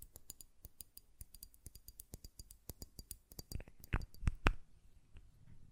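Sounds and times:
taps and clicks on a glass perfume bottle: 0.0 - 4.4.

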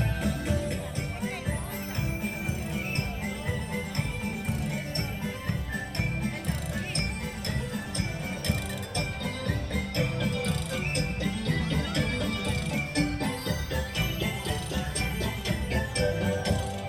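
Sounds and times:
faint voices: 0.0 - 16.8
parade music: 0.0 - 16.8.

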